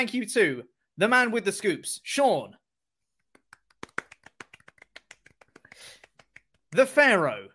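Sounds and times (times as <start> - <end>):
speech: 0.0 - 2.6, 6.7 - 7.5
hand clapping: 3.2 - 7.0.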